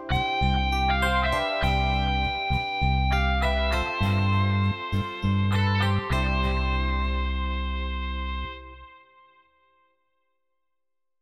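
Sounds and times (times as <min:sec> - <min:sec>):
soft rock backing track: 0:00.0 - 0:08.5.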